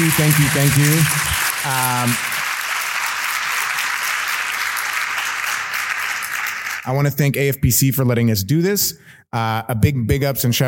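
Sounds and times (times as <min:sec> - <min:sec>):
speech: 0:00.0 - 0:02.3, 0:06.8 - 0:10.6
crowd applauding: 0:00.0 - 0:06.9.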